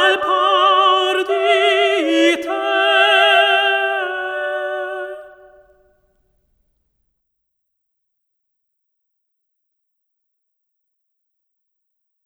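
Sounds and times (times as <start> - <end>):
polyphonic Italian vocal song: 0.0 - 6.0.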